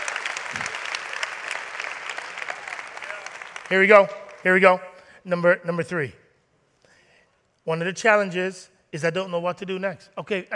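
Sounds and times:
crowd clapping: 0:00.0 - 0:04.7
speech: 0:03.7 - 0:06.2, 0:07.6 - 0:10.5.

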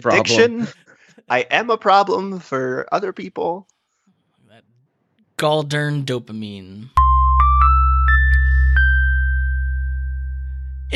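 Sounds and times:
speech: 0:00.0 - 0:03.7, 0:05.4 - 0:07.0
segment chime: 0:07.0 - 0:10.9.

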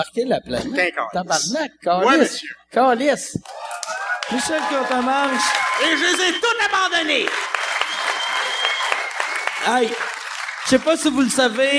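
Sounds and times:
speech: 0:00.0 - 0:07.5, 0:09.6 - 0:11.7
audience applause: 0:03.5 - 0:11.7.

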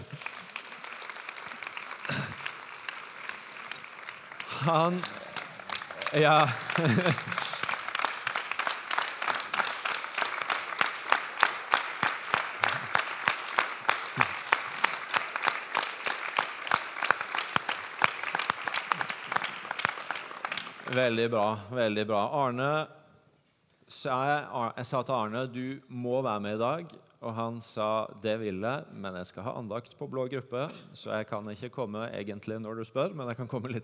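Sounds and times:
audience clapping: 0:00.0 - 0:21.3
speech: 0:04.6 - 0:05.2, 0:06.1 - 0:07.5, 0:21.0 - 0:23.0, 0:24.0 - 0:33.8
laughter: 0:06.1 - 0:07.8.

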